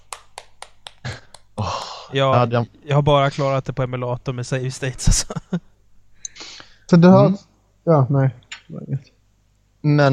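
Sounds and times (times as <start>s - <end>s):
brief small applause: 0.0s - 2.1s
speech: 2.1s - 5.7s, 6.9s - 9.1s, 9.8s - 10.1s.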